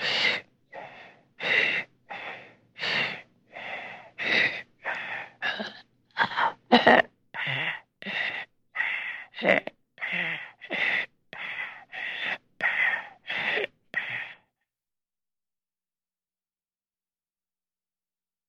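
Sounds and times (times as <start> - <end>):
heavy breathing: 0.0 - 14.5.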